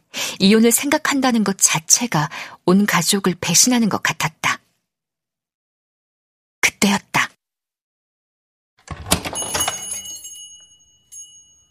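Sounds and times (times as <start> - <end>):
speech: 0.4 - 4.6
door rattling open: 8.8 - 10.2
entrance bell jingling: 9.1 - 11.6.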